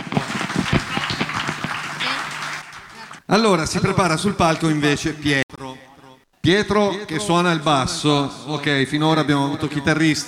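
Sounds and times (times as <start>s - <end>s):
audience applause: 0.0s - 3.3s
speech: 3.3s - 5.4s, 6.4s - 10.2s.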